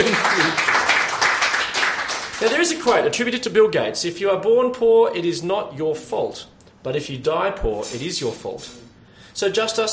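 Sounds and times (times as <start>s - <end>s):
audience applause: 0.0s - 2.7s
speech: 2.4s - 8.8s, 9.4s - 9.9s.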